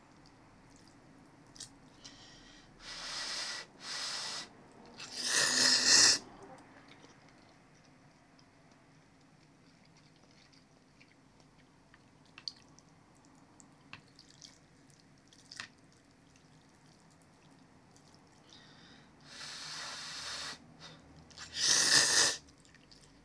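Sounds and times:
person just eating ramen: 1.6 - 6.2, 21.4 - 22.4.

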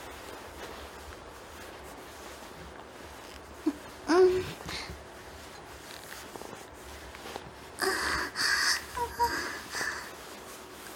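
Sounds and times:
woman's erotic masturbation voice ASMR: 3.7 - 4.8, 7.8 - 10.1.

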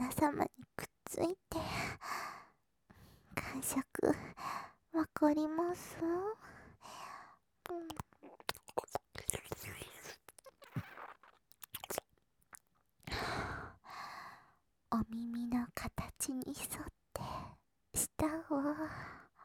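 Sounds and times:
person's voice: 0.0 - 1.9, 3.4 - 4.3, 5.0 - 6.4, 7.7 - 10.2, 15.0 - 17.4, 18.0 - 18.9
ASMR ear kissing sounds on the right: 10.0 - 12.0.

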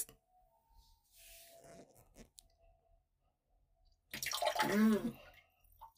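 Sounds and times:
urinating in a toilet at the family home: 4.0 - 5.9.

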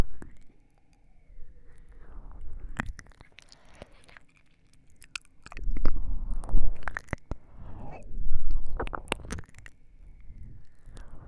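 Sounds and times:
soft ear licking on the right: 1.8 - 9.8.

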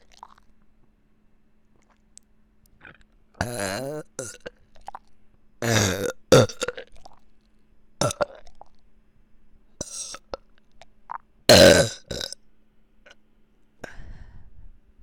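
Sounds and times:
person burping: 3.4 - 4.4, 5.6 - 6.8, 8.0 - 8.4, 11.5 - 12.4.

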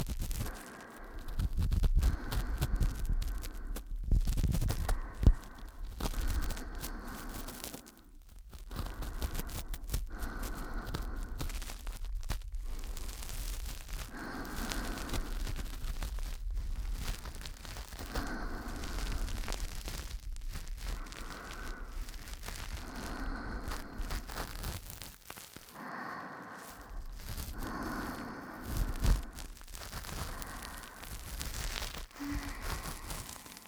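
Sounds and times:
ASMR ear cleaning in the left ear: 0.0 - 33.6.

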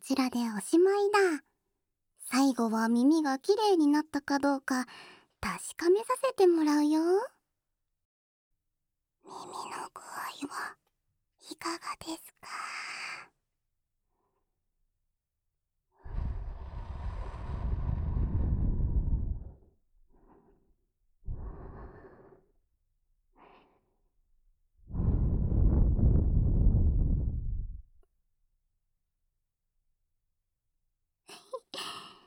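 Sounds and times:
speech: 0.0 - 1.5, 2.3 - 7.4, 9.3 - 10.8, 11.5 - 13.3
soft breaths blown into the ear after ear cleaning: 16.0 - 19.5, 24.9 - 27.7.

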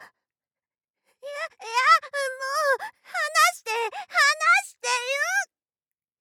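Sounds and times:
ASMR voice: 1.4 - 5.5.

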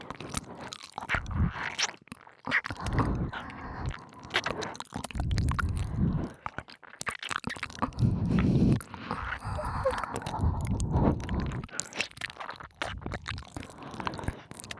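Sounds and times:
binaural ear licking: 0.0 - 14.7
breathy exhales: 8.0 - 11.7.

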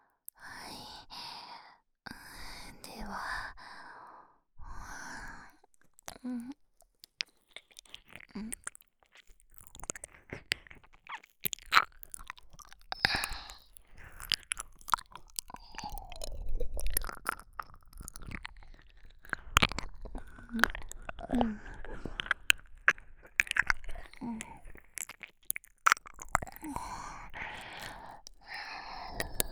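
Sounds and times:
ear licking in the left ear: 7.1 - 29.5.

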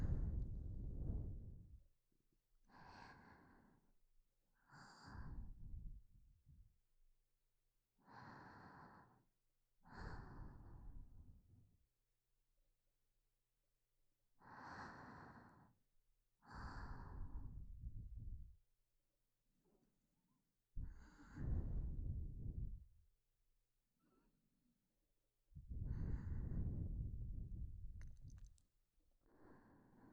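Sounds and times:
person breathing in sleep: 0.0 - 1.7, 2.7 - 3.8, 4.6 - 6.0, 8.0 - 9.2, 9.8 - 11.2, 14.4 - 15.8, 16.4 - 18.5, 20.8 - 22.9, 25.7 - 28.5, 29.2 - 30.1.

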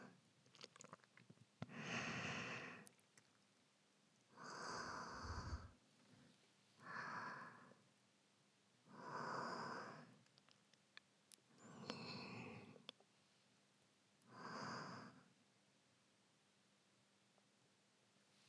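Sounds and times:
sleeping breath: 1.7 - 2.9, 4.4 - 5.8, 6.8 - 7.8, 8.9 - 10.2, 11.6 - 12.8.

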